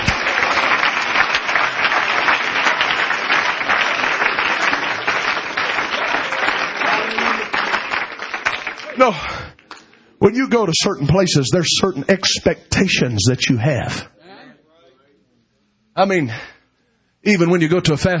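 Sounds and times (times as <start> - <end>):
audience clapping hands in praise: 0.0 - 10.2
speech: 9.0 - 9.3, 10.2 - 14.1, 16.0 - 16.5, 17.2 - 18.1.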